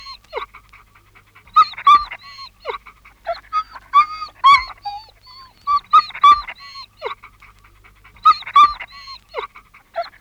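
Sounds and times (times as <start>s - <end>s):
anxious dog yelping and whimpering: 1.4s - 7.2s, 8.1s - 10.1s.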